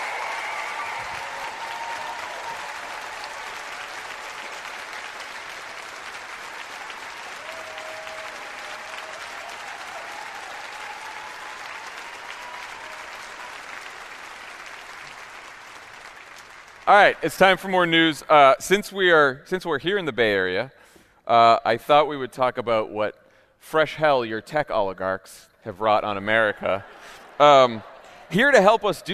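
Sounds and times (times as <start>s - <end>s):
faint cheers: 0.0s - 4.7s, 6.7s - 13.9s
audience applause: 0.0s - 17.6s
speech: 16.9s - 29.1s.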